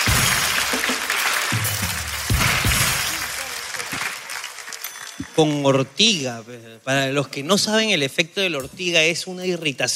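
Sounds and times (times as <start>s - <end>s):
crowd clapping: 0.0s - 6.2s
speech: 5.4s - 9.9s.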